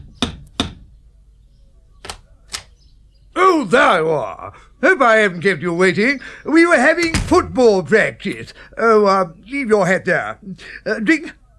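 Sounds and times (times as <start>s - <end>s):
speech: 3.6s - 11.4s
knocking on the door of a big house: 7.0s - 7.6s.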